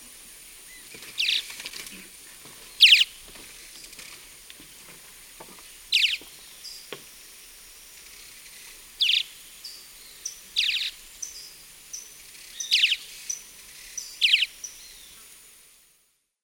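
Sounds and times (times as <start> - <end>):
Gray-breasted Martin in eastern lowlands of South America: 2.8 - 3.2, 5.9 - 6.8, 9.0 - 9.4, 10.2 - 13.4, 14.0 - 14.8.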